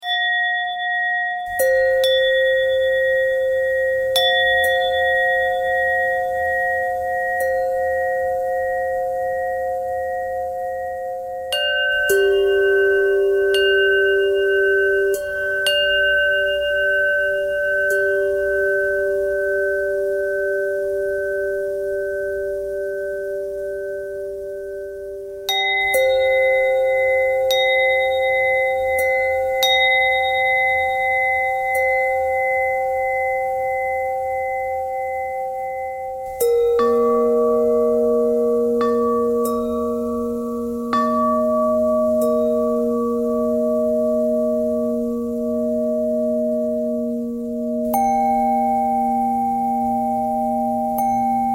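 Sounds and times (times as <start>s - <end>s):
bell: 0.0s - 51.5s.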